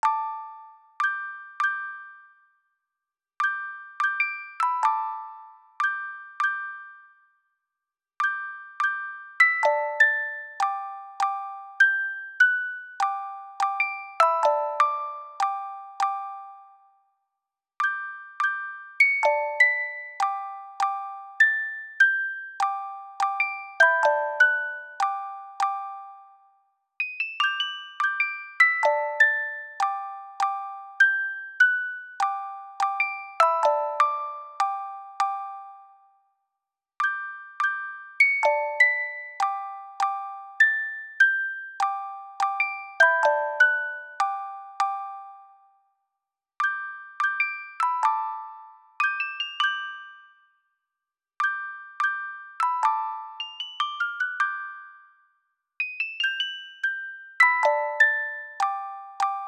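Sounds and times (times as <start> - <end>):
music box: 0.0 - 2.7, 3.4 - 7.6, 8.2 - 17.2, 17.8 - 36.4, 37.0 - 50.8, 51.4 - 59.4.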